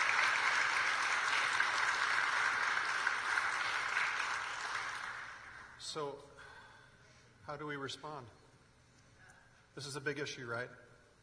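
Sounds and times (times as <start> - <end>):
audience applause: 0.0 - 5.7
speech: 5.9 - 6.4, 7.5 - 8.4, 9.8 - 10.8.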